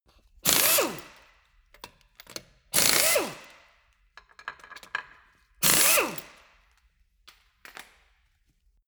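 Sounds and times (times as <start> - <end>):
impact wrench screw sequence: 0.5 - 1.3, 2.2 - 3.7, 5.6 - 6.5.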